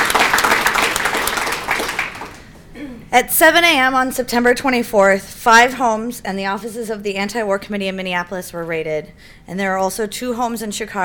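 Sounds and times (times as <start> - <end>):
audience applause: 0.0 - 2.5
speech: 3.1 - 11.0.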